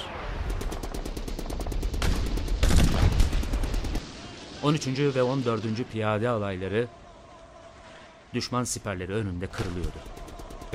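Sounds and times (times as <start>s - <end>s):
machine gun fire: 0.4s - 4.1s, 9.6s - 10.7s
speech: 4.6s - 7.0s, 8.3s - 10.7s.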